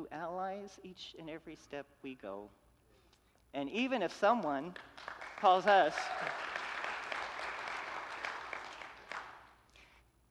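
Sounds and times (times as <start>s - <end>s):
speech: 0.0s - 2.6s, 3.5s - 6.6s
audience clapping: 4.4s - 9.7s.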